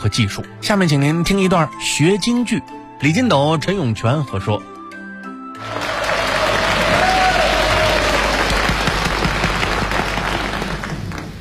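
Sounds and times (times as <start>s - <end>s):
speech: 0.0s - 4.7s
audience applause: 5.6s - 11.3s.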